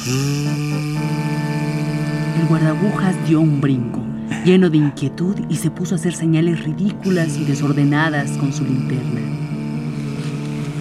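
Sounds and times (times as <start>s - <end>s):
speech: 0.0s - 0.6s, 2.4s - 9.4s
distant train whistle blast: 0.0s - 4.0s, 7.0s - 10.7s.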